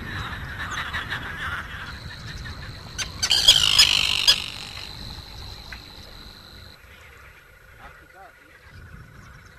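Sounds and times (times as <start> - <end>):
Dalmatian pelicans moaning in chorus: 0.2 - 6.7.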